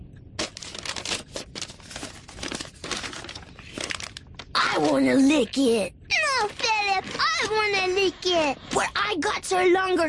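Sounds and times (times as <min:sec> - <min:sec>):
paper rustling as a letter is slid into an envelope: 0:00.4 - 0:05.3, 0:06.2 - 0:08.6
speech: 0:04.8 - 0:10.0.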